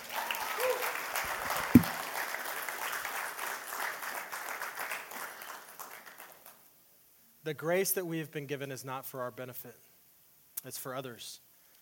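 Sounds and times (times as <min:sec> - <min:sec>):
round of applause: 0:00.0 - 0:06.7
speech: 0:07.4 - 0:09.9, 0:10.6 - 0:11.5.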